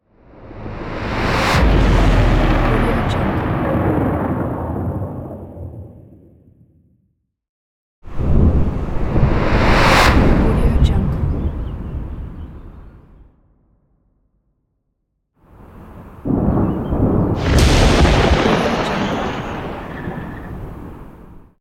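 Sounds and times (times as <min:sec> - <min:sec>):
thunder: 0:00.4 - 0:06.8, 0:08.1 - 0:12.3, 0:16.2 - 0:21.5.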